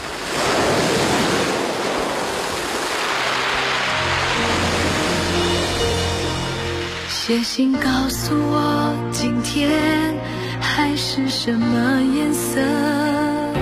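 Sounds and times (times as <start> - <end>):
ocean waves surging onto shore: 0.0 - 8.1
speech: 7.3 - 13.2.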